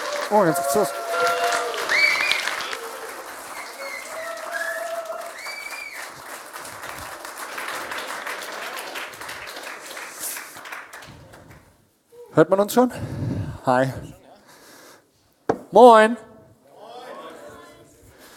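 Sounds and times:
huge applause from audience: 0:00.0 - 0:11.6
speech: 0:00.3 - 0:01.4, 0:12.4 - 0:14.2, 0:15.7 - 0:16.3.

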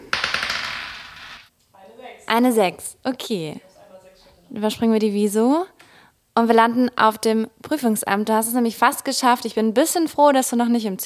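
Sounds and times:
die being rolled: 0:00.0 - 0:01.5
speech: 0:02.3 - 0:03.7, 0:04.5 - 0:05.8, 0:06.4 - 0:11.0.

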